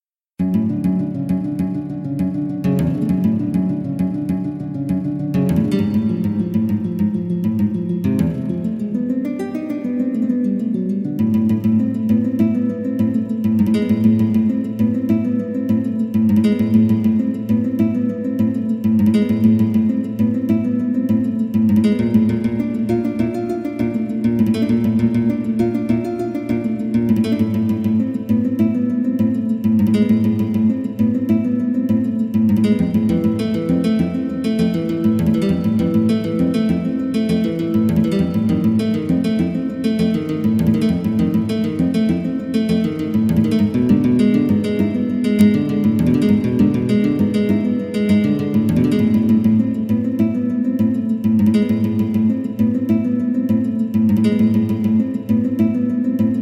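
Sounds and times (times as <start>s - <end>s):
zeimbekiko guitar etude: 0.4s - 56.3s.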